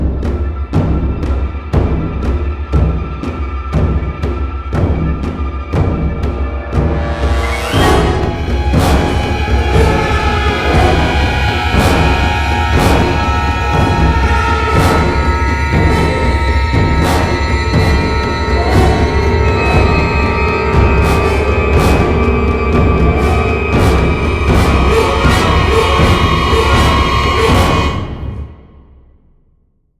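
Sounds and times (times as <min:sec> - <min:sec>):
terror atmosphere: 0:00.1 - 0:28.9.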